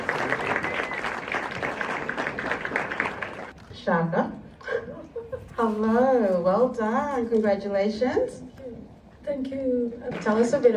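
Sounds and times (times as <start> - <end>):
audience applause: 0.0 - 3.5
speech: 3.9 - 4.4, 5.6 - 8.5, 9.3 - 10.7.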